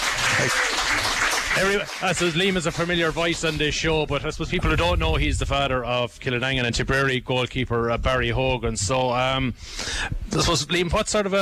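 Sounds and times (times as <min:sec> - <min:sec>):
audience applause: 0:00.0 - 0:03.7
speech: 0:00.4 - 0:00.8, 0:01.6 - 0:11.3.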